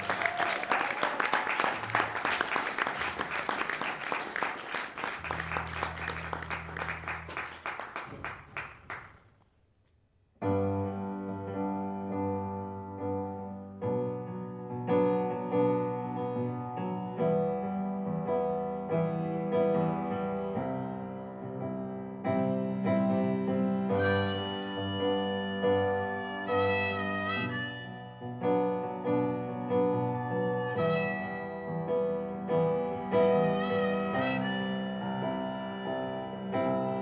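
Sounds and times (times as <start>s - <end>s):
audience applause welcoming a pianist: 0.0s - 9.2s
piano playing: 2.9s - 8.9s, 10.4s - 37.0s.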